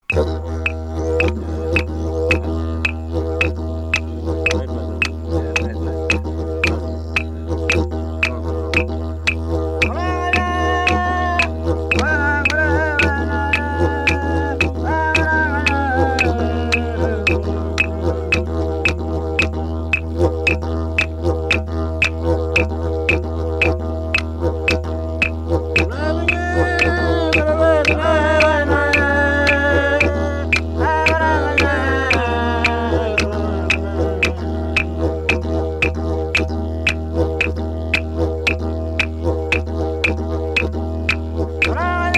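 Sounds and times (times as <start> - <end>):
Aboriginal didgeridoo: 0.0 - 42.1
laughter: 1.2 - 2.6, 4.1 - 6.4, 12.1 - 18.8, 25.9 - 35.3.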